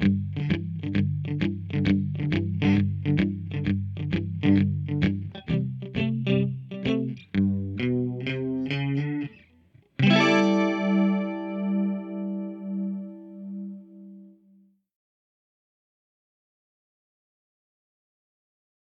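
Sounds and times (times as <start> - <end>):
blues rhythm guitar track: 0.0 - 14.2.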